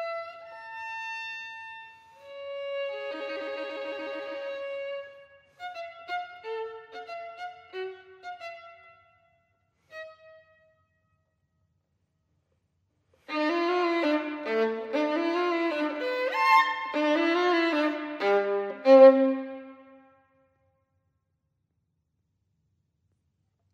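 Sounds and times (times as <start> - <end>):
solo violin sonata: 0.0 - 9.2, 9.8 - 10.6, 13.2 - 20.1.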